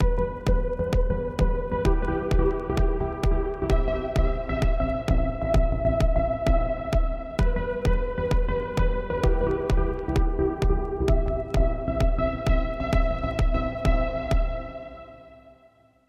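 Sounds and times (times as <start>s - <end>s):
chords: 0.0s - 15.5s.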